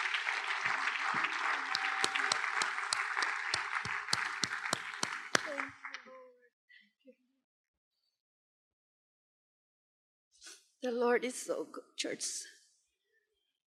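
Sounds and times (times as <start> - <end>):
audience clapping: 0.0 - 6.1
speech: 10.9 - 12.6.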